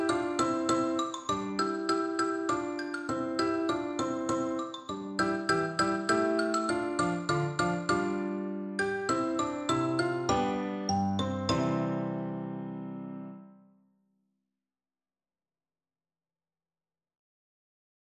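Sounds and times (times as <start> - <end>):
xylophone: 0.0 - 12.5.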